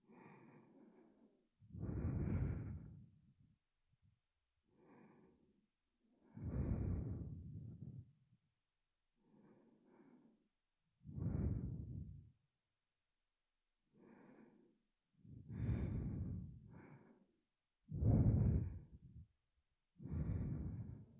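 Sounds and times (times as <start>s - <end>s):
double sweet and spicy natural breathing close to the ear: 0.0s - 3.3s, 4.7s - 8.1s, 9.2s - 10.4s, 11.0s - 12.3s, 13.9s - 19.4s, 20.0s - 21.1s.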